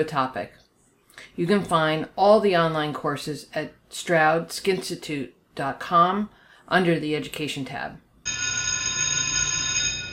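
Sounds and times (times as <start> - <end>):
speech: 0.0 - 0.6, 1.3 - 8.0
bell ringing: 8.2 - 10.1.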